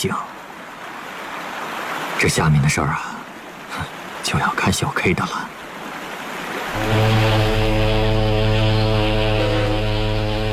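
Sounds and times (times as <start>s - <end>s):
speech: 0.0s - 0.3s, 2.2s - 3.1s, 3.7s - 5.6s, 6.8s - 7.2s
distant ship's steam whistle: 6.7s - 10.5s.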